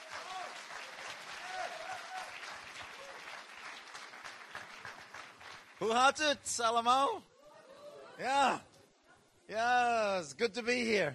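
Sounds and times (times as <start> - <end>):
large audience applauding to welcome someone onstage: 0.0 - 6.1
speech: 5.8 - 7.3, 8.2 - 8.7, 9.5 - 11.1.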